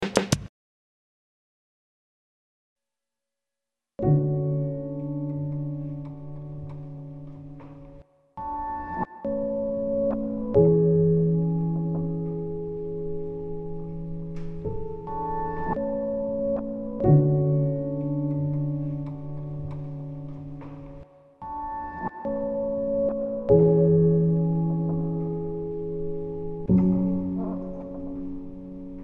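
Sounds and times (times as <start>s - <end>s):
Roland SP 404Mk2 piano slices: 4.0s - 29.0s.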